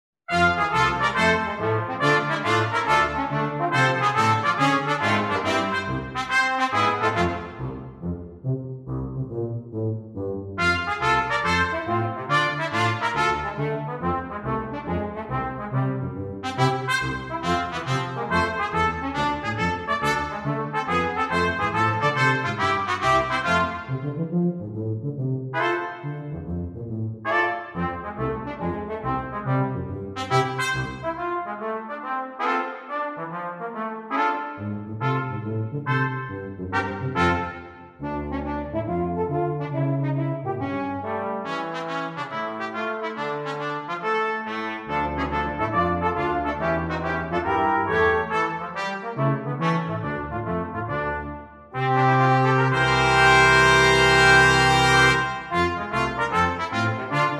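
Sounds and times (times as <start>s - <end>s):
ragtime music: 0.3s - 25.0s, 25.6s - 57.3s.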